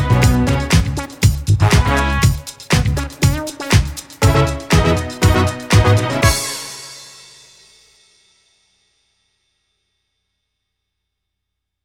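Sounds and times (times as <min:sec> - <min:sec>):
disco music: 0:00.0 - 0:07.3.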